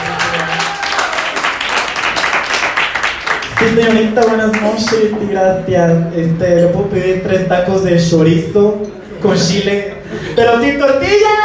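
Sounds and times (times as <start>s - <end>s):
audience applause: 0.0s - 4.0s
speech: 3.6s - 11.4s.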